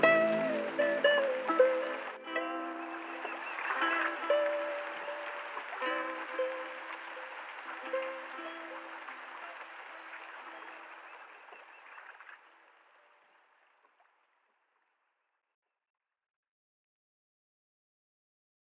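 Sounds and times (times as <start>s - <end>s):
ocean waves: 0.0s - 13.8s.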